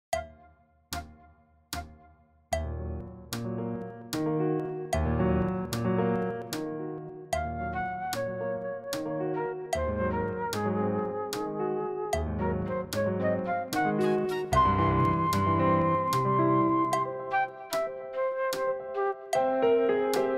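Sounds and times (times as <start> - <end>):
piano: 2.5 - 20.3
fast flute: 7.6 - 19.5.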